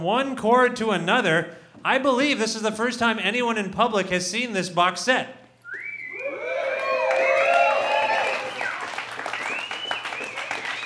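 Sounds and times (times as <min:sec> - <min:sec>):
speech: 0:00.0 - 0:05.4
room full of people cheering: 0:05.8 - 0:10.8.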